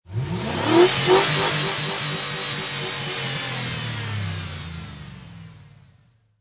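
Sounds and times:
truck 5.3 liter engine revving: 0.1 - 5.0.

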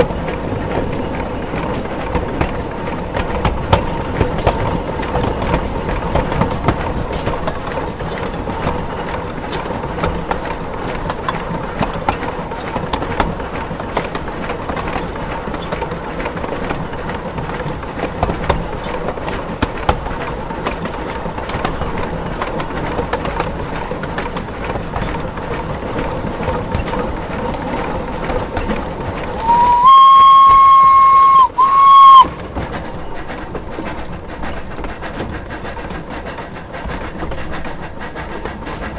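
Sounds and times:
1906 0-2-0 steam locomotive pistons: 0.0 - 38.9.

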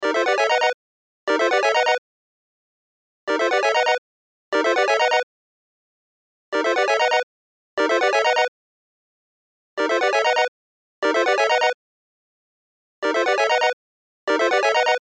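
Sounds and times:
cell phone ringtone: 0.0 - 0.8, 1.4 - 2.0, 3.3 - 4.0, 4.6 - 5.2, 6.6 - 7.2, 7.8 - 8.5, 9.8 - 11.8, 13.0 - 15.0.

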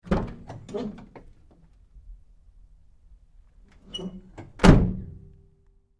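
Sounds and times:
GMC Savana truck side door opening and closing: 0.0 - 1.3, 3.7 - 5.2.

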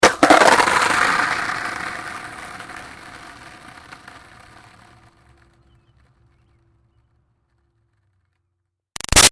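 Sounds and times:
skateboard dropping and crashing: 0.0 - 6.6
skateboard rolling away: 0.0 - 8.7.

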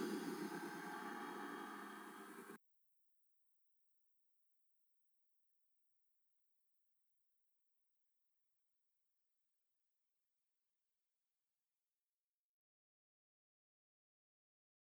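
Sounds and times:
frightening drone: 0.0 - 2.6.

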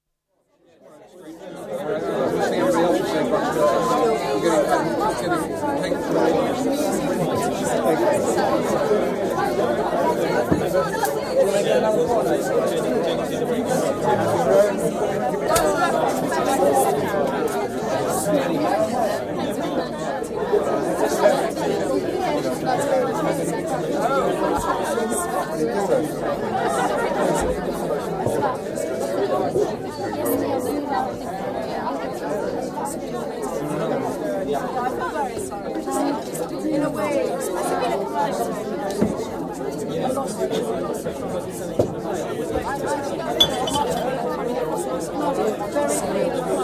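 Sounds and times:
close animated chatter at lively cocktail party: 1.0 - 46.6.

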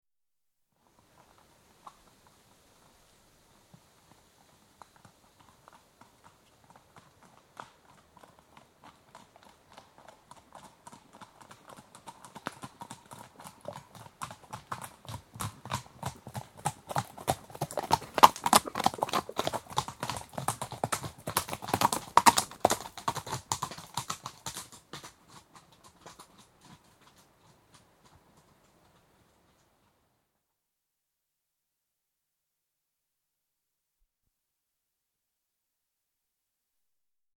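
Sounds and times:
two horses trotting on approach: 3.7 - 30.0.

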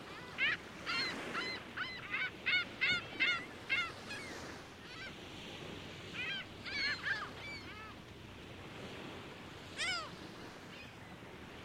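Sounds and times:
gull flock calling at Lake Ontario: 0.0 - 5.2, 6.1 - 8.0, 9.7 - 10.9.

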